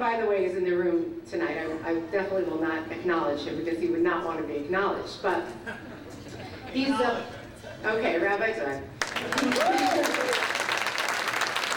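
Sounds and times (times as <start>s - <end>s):
speech: 0.0s - 6.0s, 6.7s - 10.5s
audience applause: 9.0s - 11.7s.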